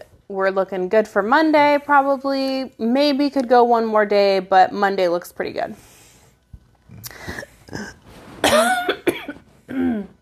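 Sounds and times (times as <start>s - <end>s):
speech: 0.3s - 6.0s, 7.0s - 9.0s
person coughing after choking on saliva: 7.2s - 10.2s.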